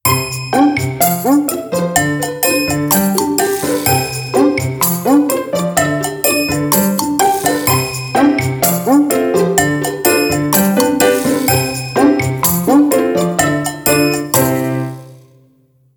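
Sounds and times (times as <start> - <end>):
ringtone: 0.1 - 15.3.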